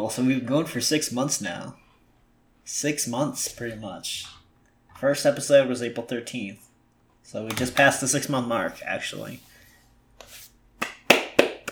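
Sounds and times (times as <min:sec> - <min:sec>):
speech: 0:00.0 - 0:01.8, 0:02.7 - 0:04.4, 0:05.0 - 0:09.5
golf clap: 0:10.8 - 0:11.6.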